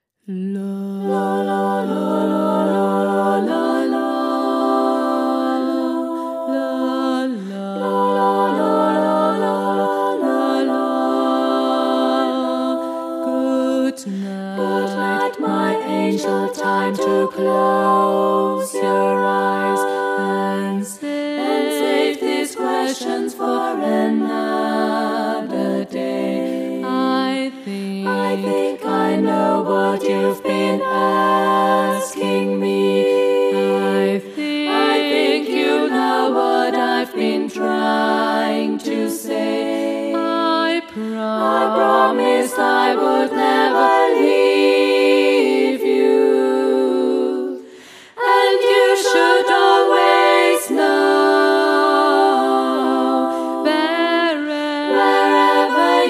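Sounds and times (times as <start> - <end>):
lullaby: 0.3 - 56.0.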